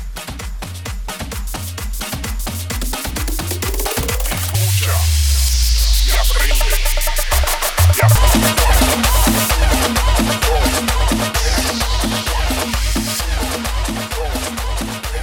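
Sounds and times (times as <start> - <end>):
130 bpm music track: 0.3 - 15.1.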